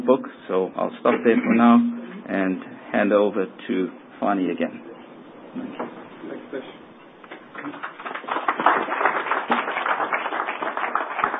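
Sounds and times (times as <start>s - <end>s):
speech: 0.0s - 4.9s, 5.5s - 6.8s, 7.6s - 7.9s
audience applause: 7.6s - 11.3s.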